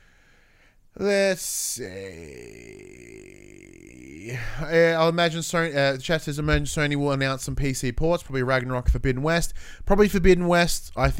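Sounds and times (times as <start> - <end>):
speech: 1.0 - 3.0, 4.2 - 11.1
person burping: 1.0 - 4.8.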